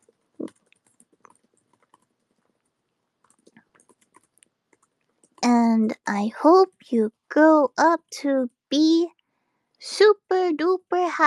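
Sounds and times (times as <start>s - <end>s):
typing on a keyboard in capital letters: 0.0s - 5.6s
speech: 5.7s - 9.2s, 9.8s - 11.2s.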